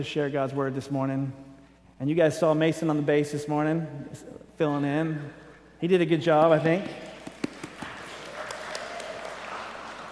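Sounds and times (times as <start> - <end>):
speech: 0.0 - 7.0
audience clapping: 7.0 - 10.1.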